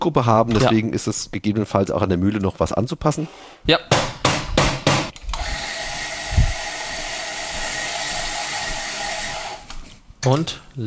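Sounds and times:
speech: 0:00.0 - 0:04.2, 0:10.2 - 0:10.8
espresso machine gear pump whirring hum: 0:05.3 - 0:09.8.

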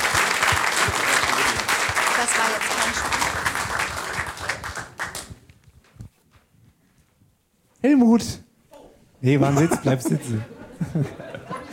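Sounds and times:
audience applause: 0:00.0 - 0:05.4
speech: 0:02.5 - 0:03.2, 0:07.8 - 0:08.4, 0:09.2 - 0:11.3
laughter: 0:09.3 - 0:11.7.

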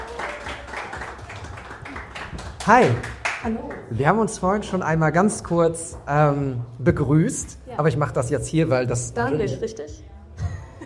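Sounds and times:
audience applause: 0:00.0 - 0:06.0
speech: 0:02.6 - 0:10.1.

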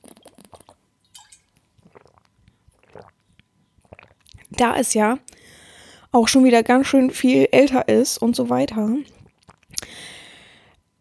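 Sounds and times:
swallowing gulps: 0:00.0 - 0:00.8, 0:01.7 - 0:04.6, 0:09.0 - 0:10.3
person sipping a drink: 0:00.0 - 0:04.5, 0:09.1 - 0:10.5
speech: 0:04.6 - 0:05.2, 0:06.1 - 0:09.2.

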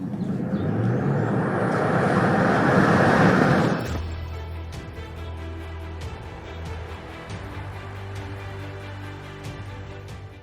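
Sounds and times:
Tesla Model Y electric car accelerating from standstill: 0:00.0 - 0:04.4.

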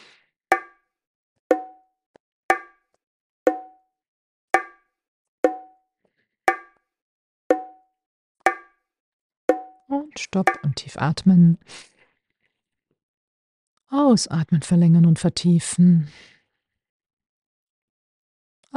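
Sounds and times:
bilateral stimulation alternating tones: 0:00.5 - 0:00.8, 0:01.5 - 0:01.8, 0:02.5 - 0:02.8, 0:03.5 - 0:03.8, 0:04.6 - 0:04.8, 0:05.5 - 0:05.8, 0:06.5 - 0:06.8, 0:07.5 - 0:07.9, 0:08.5 - 0:08.8, 0:09.5 - 0:10.9
speech: 0:10.2 - 0:11.9, 0:13.9 - 0:16.3.

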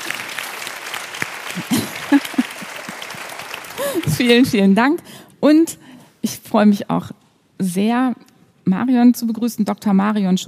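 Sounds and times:
audience applause: 0:00.0 - 0:04.4
laughter: 0:01.5 - 0:04.2
speech: 0:01.6 - 0:02.3, 0:04.2 - 0:10.4.

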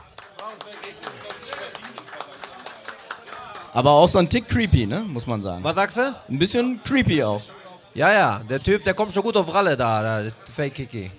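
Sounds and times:
audience applause: 0:00.0 - 0:04.2
speech: 0:00.4 - 0:01.4, 0:03.7 - 0:11.1.

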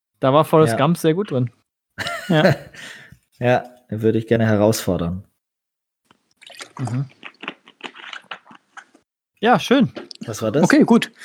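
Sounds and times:
speech: 0:00.2 - 0:05.3, 0:06.8 - 0:07.2, 0:09.4 - 0:11.2
person sipping water: 0:06.1 - 0:09.1, 0:09.9 - 0:10.3.

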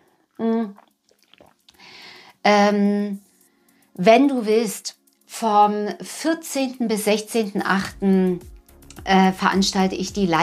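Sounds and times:
person sipping water: 0:00.3 - 0:02.2
speech: 0:02.4 - 0:03.3, 0:04.0 - 0:10.4.

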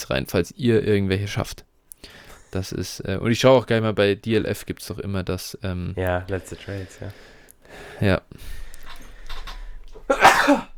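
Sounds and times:
speech: 0:00.0 - 0:08.6, 0:10.1 - 0:10.7
soft breathy sounds: 0:02.0 - 0:02.6, 0:06.5 - 0:10.0
sneeze: 0:10.1 - 0:10.7.

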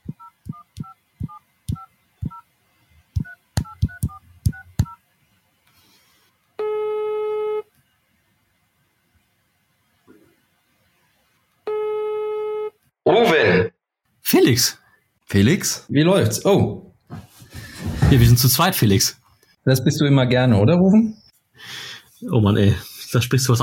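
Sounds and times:
telephone touch-tone dialing beeps: 0:00.1 - 0:02.4, 0:03.2 - 0:05.0
telephone ringing tones: 0:06.6 - 0:07.7, 0:11.7 - 0:12.8
speech: 0:13.1 - 0:13.4, 0:14.5 - 0:17.3, 0:18.1 - 0:23.6.

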